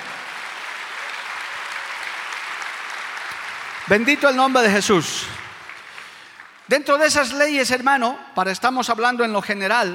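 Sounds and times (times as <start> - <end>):
audience applause: 0.0 - 6.7
speech: 3.9 - 5.4, 6.7 - 9.9.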